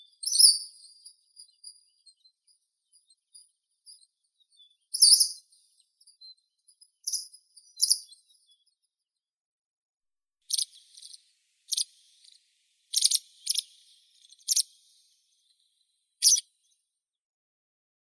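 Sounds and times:
white wagtail Motacilla alba calling: 0:10.5 - 0:15.2.

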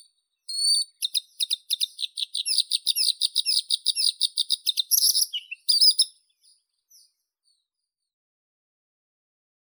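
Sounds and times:
bluethroat Luscinia svecica singing: 0:00.8 - 0:06.1.

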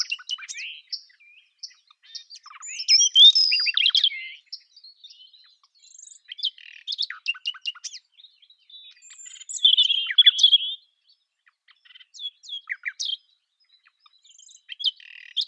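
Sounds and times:
nightingale singing: 0:00.0 - 0:15.4.

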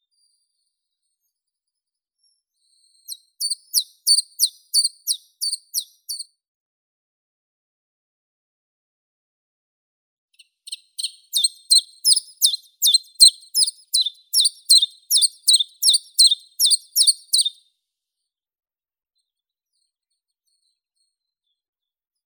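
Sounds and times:
chiffchaff Phylloscopus collybita singing: 0:11.0 - 0:17.6.

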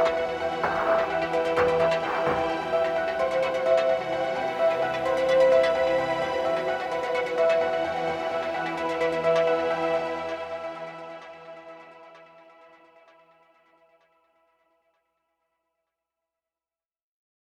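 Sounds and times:
remixed music: 0:00.0 - 0:11.8.

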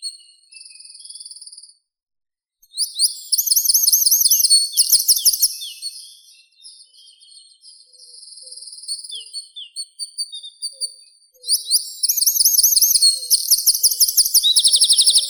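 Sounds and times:
wren Troglodytes troglodytes singing: 0:02.8 - 0:06.2, 0:11.4 - 0:15.2.

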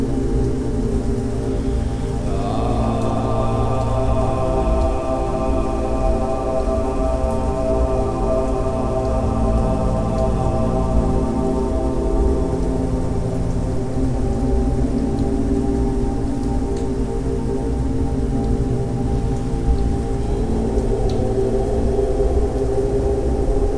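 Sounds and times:
rain: 0:00.0 - 0:23.7
om mantra chanting for meditation: 0:02.0 - 0:13.9.

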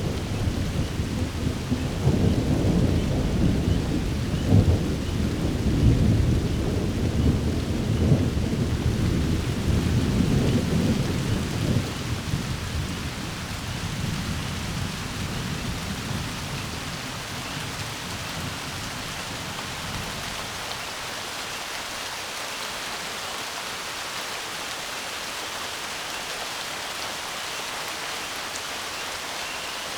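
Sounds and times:
rain: 0:00.0 - 0:29.9
peals of thunder: 0:00.1 - 0:12.5.

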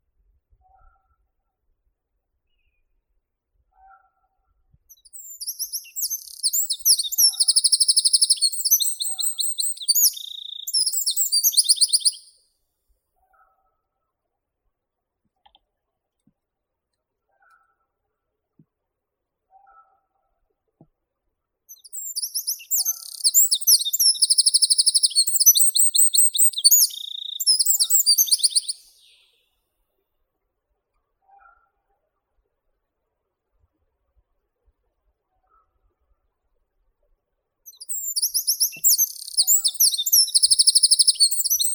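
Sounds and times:
wren Troglodytes troglodytes calling: 0:04.9 - 0:12.3, 0:21.7 - 0:29.2, 0:37.7 - 0:41.7.

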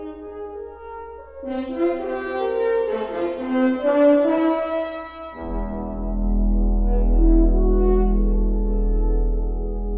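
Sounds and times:
fanfare: 0:01.4 - 0:09.9.

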